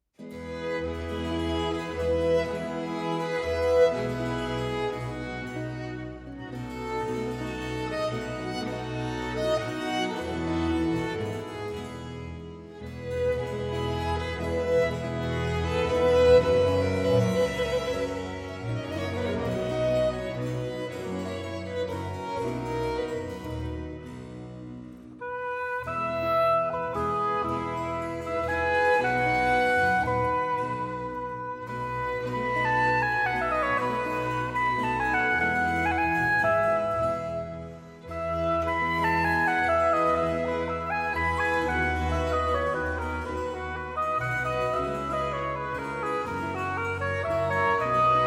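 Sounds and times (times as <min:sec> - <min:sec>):
second movement in F major: 0:00.4 - 0:48.2.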